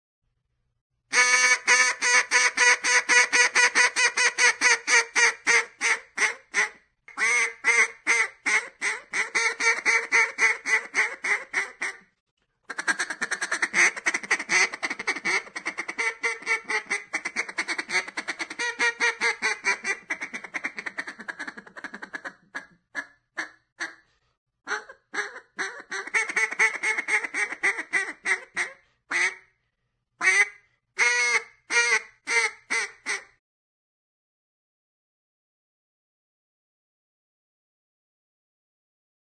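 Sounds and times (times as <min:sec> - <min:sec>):
duck: 0:01.1 - 0:12.1, 0:12.7 - 0:24.1, 0:24.7 - 0:29.5, 0:30.2 - 0:33.4.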